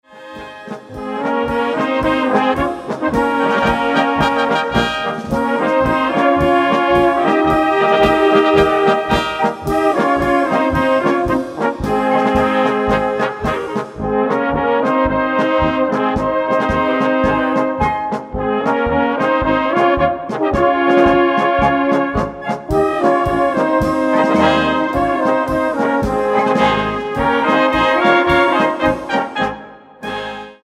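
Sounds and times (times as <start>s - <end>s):
polka music: 0.0s - 30.6s.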